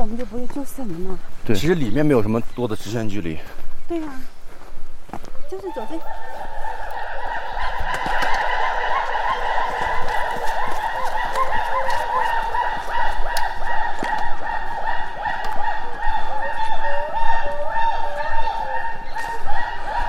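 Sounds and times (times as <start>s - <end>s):
speech: 0.0s - 4.4s, 5.1s - 6.4s
crackling background noise: 0.0s - 20.0s
Gibbon chorus wailing: 5.4s - 20.0s.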